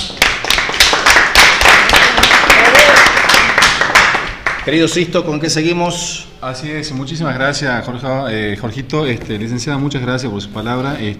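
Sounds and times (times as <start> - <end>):
audience applause: 0.0 - 4.7
speech: 4.7 - 11.1.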